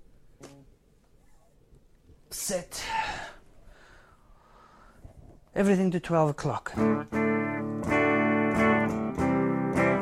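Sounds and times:
speech: 2.4s - 3.0s, 5.6s - 7.2s
clean electric guitar chords strummed: 6.8s - 9.9s.

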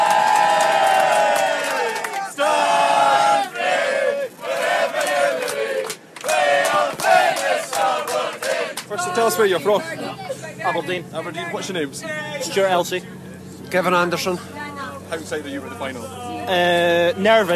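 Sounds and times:
football fans chanting and singing on a bus: 1.1s - 9.6s
speech: 9.3s - 17.5s.

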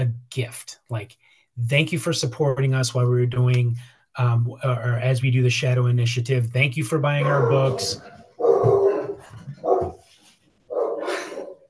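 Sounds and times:
speech: 0.4s - 9.5s
dogs barking at the mail carrier: 7.2s - 10.0s, 10.7s - 11.6s.

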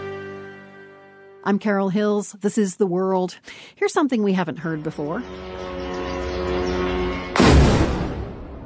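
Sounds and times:
speech: 1.5s - 5.8s
drones exploding over the suburbs of Moscow: 7.1s - 8.6s.

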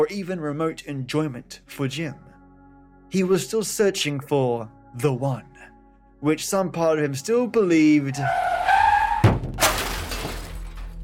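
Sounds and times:
speech: 0.0s - 2.3s, 3.1s - 8.5s
Jaguar car braking: 8.1s - 10.2s
car hitting someone: 9.2s - 11.0s.

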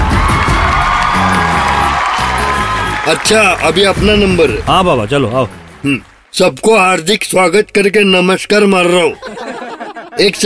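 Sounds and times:
audience at a stage show cheering and whooping: 0.0s - 4.4s
speech: 3.1s - 9.6s, 10.2s - 10.4s
laughter: 9.1s - 10.4s.

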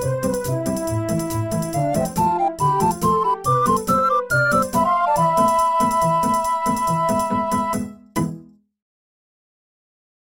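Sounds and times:
virtual ocarina: 0.0s - 8.3s.

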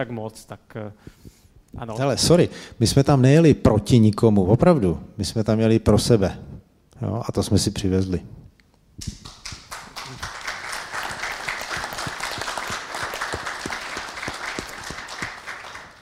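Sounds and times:
speech: 0.0s - 8.4s, 9.0s - 9.2s
audience applause: 9.2s - 16.0s.

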